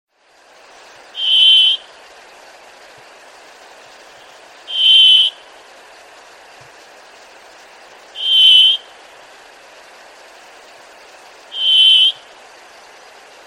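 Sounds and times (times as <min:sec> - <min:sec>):
bird call steady high whistled note: 0:01.2 - 0:01.8, 0:04.7 - 0:05.4, 0:08.2 - 0:08.9, 0:11.5 - 0:12.2.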